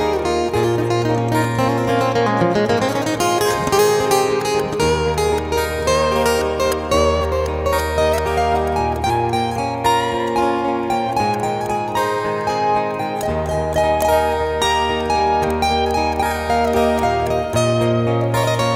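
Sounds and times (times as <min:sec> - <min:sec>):
acoustic guitar playing a cover: 0:00.0 - 0:18.7.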